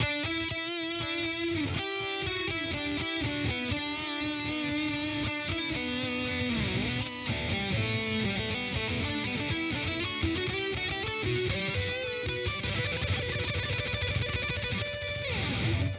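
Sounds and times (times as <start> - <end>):
guitar: 0.0 - 15.9.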